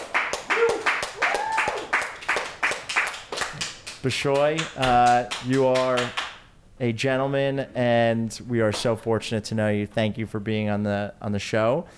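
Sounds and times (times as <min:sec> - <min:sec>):
small audience clapping: 0:00.0 - 0:06.5
speech: 0:04.0 - 0:06.2, 0:06.8 - 0:11.9.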